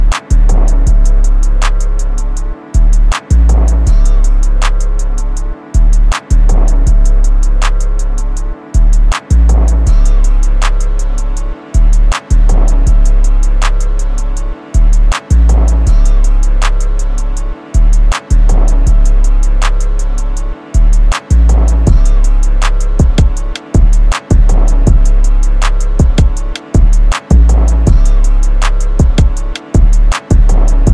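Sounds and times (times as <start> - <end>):
type beat: 0.0 - 30.9.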